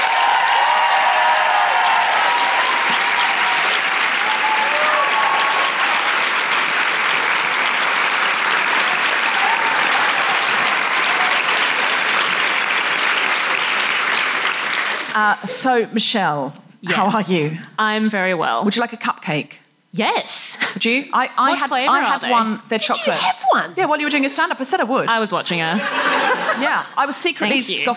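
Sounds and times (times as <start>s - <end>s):
Brisbane audience cheering: 0.0s - 15.2s
Brisbane audience clapping for a writer brought on stage: 0.0s - 15.6s, 21.5s - 23.4s
speech: 15.2s - 27.9s
laughter: 25.7s - 27.9s.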